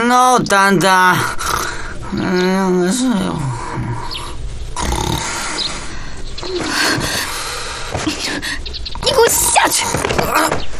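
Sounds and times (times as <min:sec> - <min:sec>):
speech: 0:00.1 - 0:01.4, 0:02.1 - 0:03.6, 0:09.2 - 0:10.6
loud snoring: 0:03.4 - 0:07.3.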